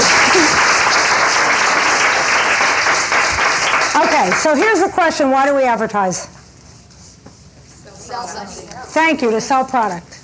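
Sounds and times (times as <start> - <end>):
audience applause welcoming a speaker: 0.0 - 4.6
speech: 4.2 - 6.4, 8.1 - 10.2.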